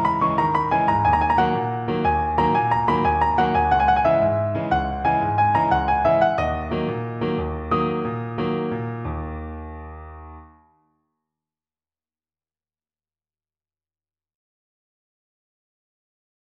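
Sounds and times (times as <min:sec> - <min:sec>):
piano: 0:00.0 - 0:10.7.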